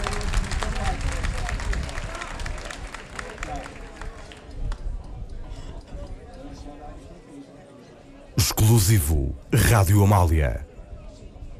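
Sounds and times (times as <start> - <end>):
crowd applauding: 0.0 - 4.1
speech: 8.6 - 10.7.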